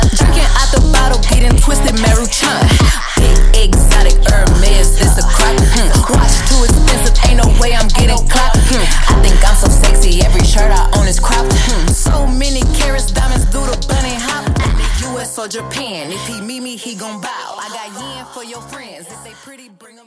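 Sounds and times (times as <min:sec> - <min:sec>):
drum beat: 0:00.0 - 0:15.0.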